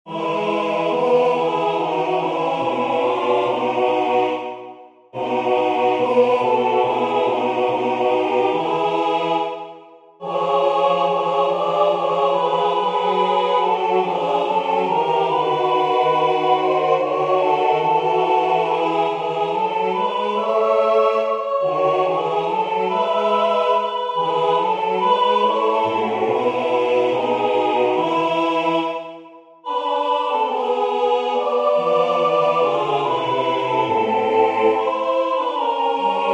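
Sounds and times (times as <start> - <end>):
full choir singing: 0.0 - 36.3.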